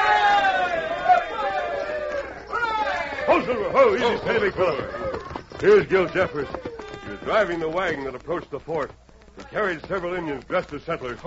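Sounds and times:
men from the fort cheering: 0.0s - 8.1s
speech: 3.4s - 6.6s, 7.2s - 11.2s.

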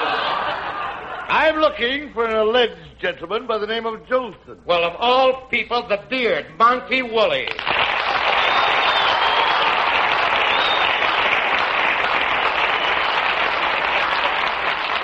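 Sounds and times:
laughter: 0.0s - 1.6s
speech: 1.3s - 7.8s
audience applause: 7.5s - 15.0s.

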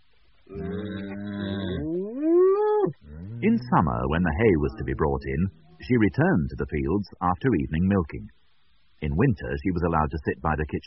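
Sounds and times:
cows mooing: 0.5s - 5.8s
speech: 3.4s - 8.4s, 9.0s - 10.8s.

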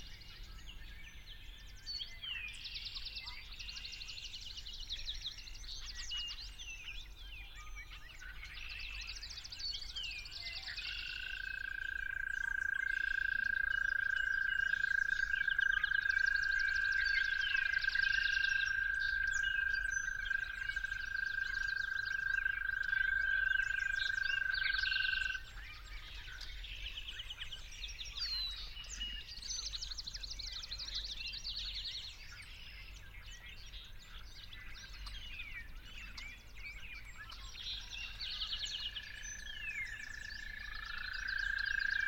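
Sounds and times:
chorus of warbling and chattering songbirds: 0.0s - 42.0s
toad trilling: 11.0s - 25.4s, 39.0s - 42.0s.

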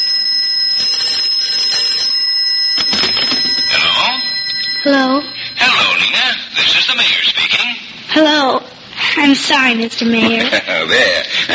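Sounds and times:
telephone ringing with metallic bell: 0.0s - 6.7s
clattering knocks: 2.8s - 3.8s
speech: 6.9s - 11.5s.

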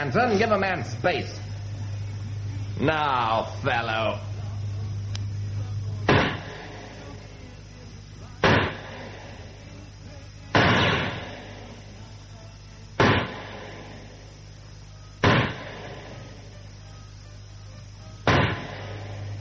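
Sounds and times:
speech: 0.0s - 1.6s, 2.8s - 4.3s
low steady hum: 0.0s - 19.3s
gunshots in a target shooting match: 6.1s - 7.0s, 8.4s - 9.3s, 10.5s - 11.7s, 13.0s - 14.0s, 15.2s - 16.3s, 18.3s - 19.2s.

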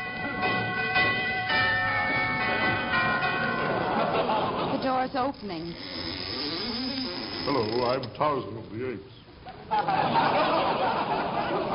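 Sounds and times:
doorbell chiming: 0.0s - 4.6s
laughter: 3.6s - 5.3s, 9.5s - 11.7s
speech: 5.0s - 6.1s, 7.4s - 11.7s.

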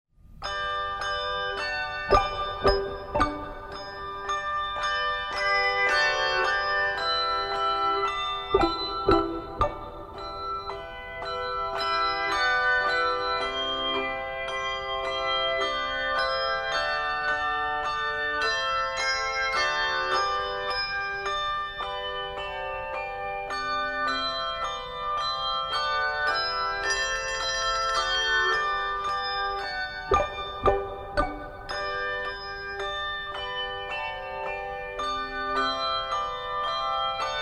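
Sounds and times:
handbell music: 0.3s - 37.3s.

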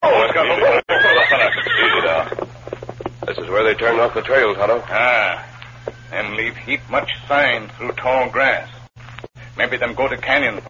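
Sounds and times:
horse neighing: 0.9s - 2.4s
speech: 3.7s - 5.5s, 6.1s - 8.8s, 9.6s - 10.6s.

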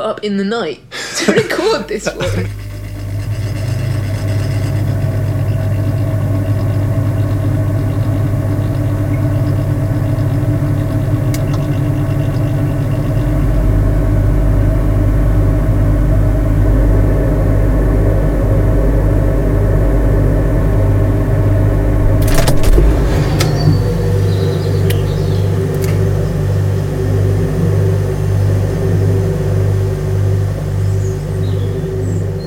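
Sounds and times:
speech: 0.0s - 2.6s
refrigerator motor hum recorded from inside: 0.8s - 32.4s
laughter: 0.9s - 2.6s
clattering click: 22.2s - 23.9s, 25.7s - 26.0s.

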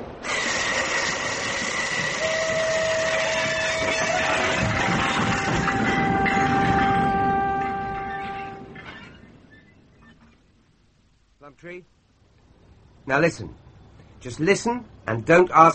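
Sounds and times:
express train running: 0.0s - 9.5s
speech: 13.1s - 13.6s, 14.2s - 15.7s.

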